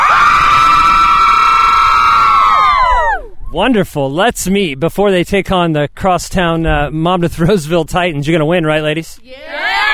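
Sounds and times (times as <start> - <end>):
crowd cheering for softball team: 0.0 - 3.4, 9.5 - 9.9
speech: 3.6 - 9.9.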